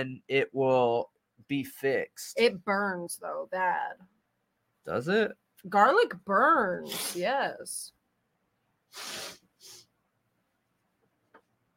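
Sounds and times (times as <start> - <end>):
speech: 0.0 - 4.2, 4.8 - 8.0, 8.9 - 9.4
nasal spray spritzes: 8.9 - 9.8.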